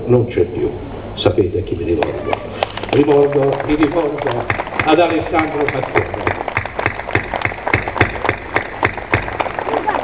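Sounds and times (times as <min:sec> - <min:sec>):
speech: 0:00.1 - 0:06.2
crowd murmuring: 0:02.0 - 0:10.0
rhythmic audience clapping: 0:02.0 - 0:10.0.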